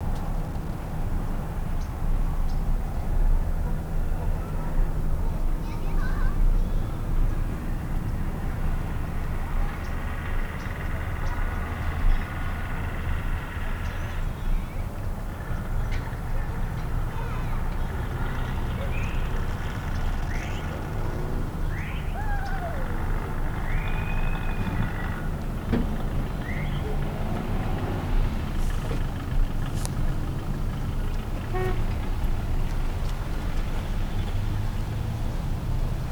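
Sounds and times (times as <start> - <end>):
neighborhood ambience: 0.0 - 36.0.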